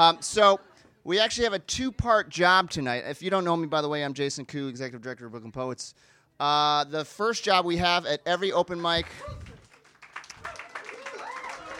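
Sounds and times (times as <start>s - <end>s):
speech: 0.0s - 9.5s
audience applauding: 8.8s - 11.7s.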